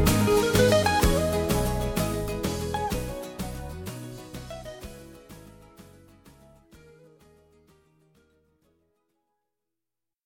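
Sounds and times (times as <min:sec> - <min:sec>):
tango music: 0:00.0 - 0:05.4.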